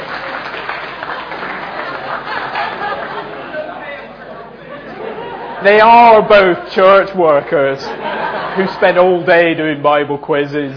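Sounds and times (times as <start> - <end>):
audience clapping: 0.0 - 3.6
laughter: 1.0 - 9.6
speech: 5.6 - 10.7.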